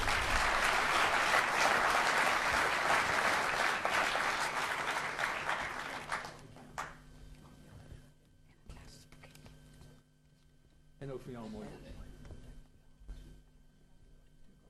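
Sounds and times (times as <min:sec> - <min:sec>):
warm audience applause: 0:00.0 - 0:07.0.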